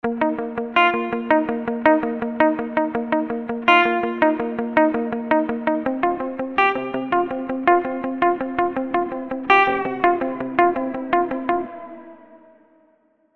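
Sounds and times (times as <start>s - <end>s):
guitar morphing FX glide modulation: 0.0s - 12.9s.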